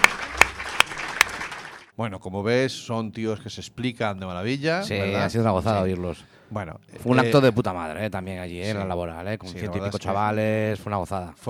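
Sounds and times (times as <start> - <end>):
audience applause: 0.0 - 1.9
speech: 2.0 - 11.4.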